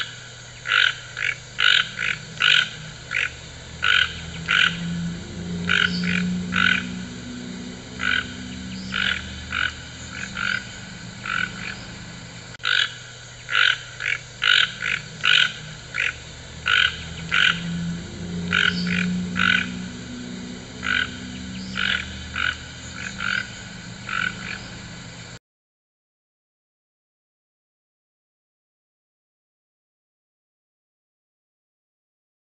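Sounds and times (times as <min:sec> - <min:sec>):
toucan harsh grating croaks: 0:00.0 - 0:25.2.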